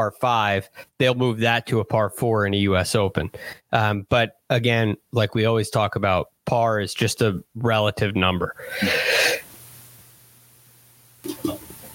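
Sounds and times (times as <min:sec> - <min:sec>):
speech: 0:00.0 - 0:09.4, 0:11.2 - 0:11.6
person sneezing: 0:08.7 - 0:09.5.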